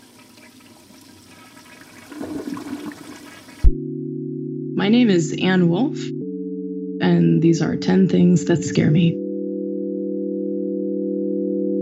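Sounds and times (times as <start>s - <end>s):
toilet flushing: 0.0s - 3.7s
low electronic hum: 3.6s - 11.8s
speech: 4.8s - 6.2s, 7.1s - 9.2s.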